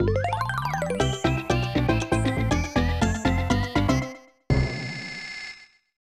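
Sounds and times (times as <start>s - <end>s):
SNES good news jingle: 0.0s - 4.4s.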